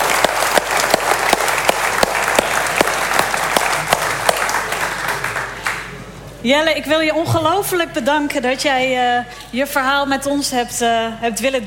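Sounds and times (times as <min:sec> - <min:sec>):
audience applause: 0:00.0 - 0:06.1
speech: 0:06.4 - 0:11.6.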